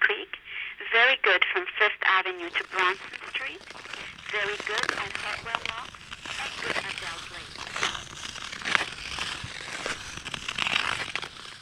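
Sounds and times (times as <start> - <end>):
speech: 0.1 - 7.5
ice skates on canal ice: 2.4 - 11.6.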